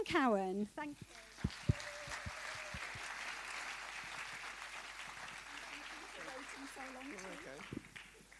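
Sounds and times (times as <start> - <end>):
speech: 0.0 - 1.8, 6.6 - 7.8
audience applause welcoming speaker: 1.0 - 8.3.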